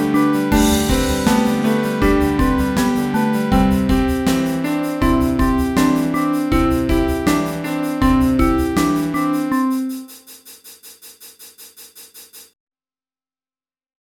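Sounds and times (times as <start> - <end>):
folk tune melody coded in Sonic Pi: 0.0 - 10.1.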